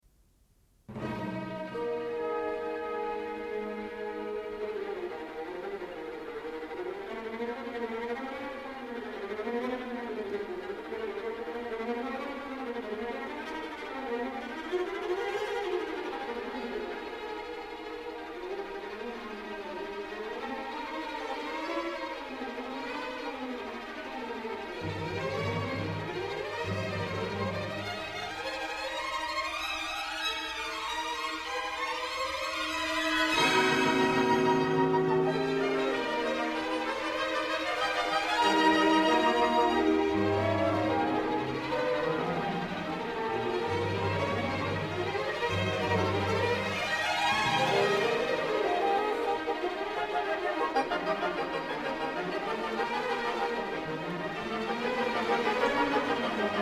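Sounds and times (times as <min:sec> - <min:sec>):
fast classical music: 0:00.8 - 0:56.5.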